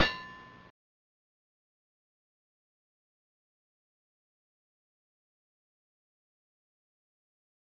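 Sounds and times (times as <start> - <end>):
sword clang: 0.0 - 0.7.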